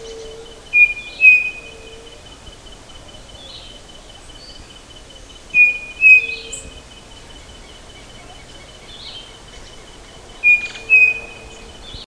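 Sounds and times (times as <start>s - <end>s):
bird calling with short whistled notes: 0.0s - 2.4s, 5.5s - 9.4s, 10.4s - 12.0s
quiet hiss: 0.0s - 12.0s.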